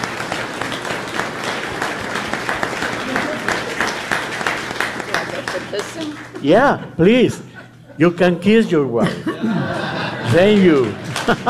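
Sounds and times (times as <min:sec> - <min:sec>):
audience applause: 0:00.0 - 0:06.5, 0:09.9 - 0:11.4
speech: 0:06.0 - 0:11.4
laughter: 0:07.4 - 0:11.4.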